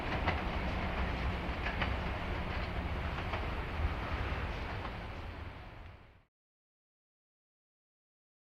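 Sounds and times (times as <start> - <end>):
underground train pulling in and stopping above ground: 0.0 - 6.3.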